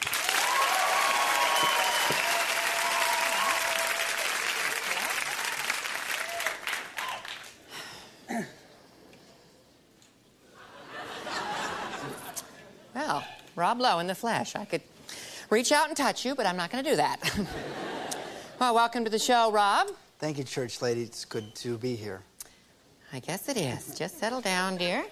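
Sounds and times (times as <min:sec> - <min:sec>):
studio audience applause welcoming guest Rob Lowe: 0:00.0 - 0:07.6
audience chuckles and laughter: 0:10.6 - 0:12.9
speech: 0:13.7 - 0:17.8, 0:18.6 - 0:22.3, 0:23.1 - 0:25.1.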